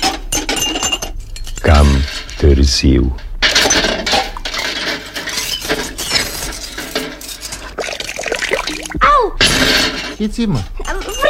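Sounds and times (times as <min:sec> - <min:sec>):
metal utensils clinking and rattling against plates: 0:00.0 - 0:02.4, 0:03.4 - 0:11.2
speech: 0:02.5 - 0:03.3, 0:10.2 - 0:11.0
running water splashing: 0:07.5 - 0:09.0.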